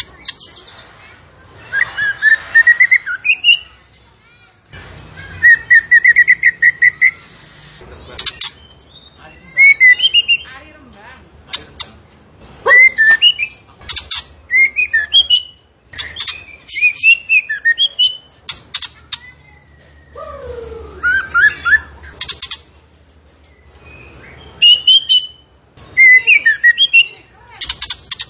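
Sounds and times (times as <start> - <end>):
zebra finch song: 0.0 - 28.2.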